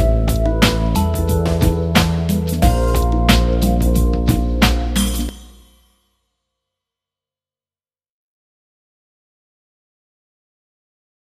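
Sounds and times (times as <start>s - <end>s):
short melody: 0.0s - 5.9s.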